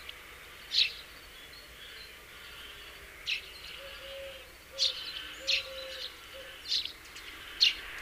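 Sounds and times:
house sparrow calls, Passer domesticus: 0.0s - 7.9s.

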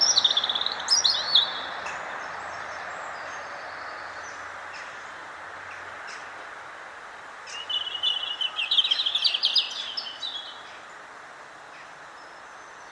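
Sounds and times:
European robin Erithacus rubecula singing: 0.0s - 6.4s, 7.5s - 11.1s.

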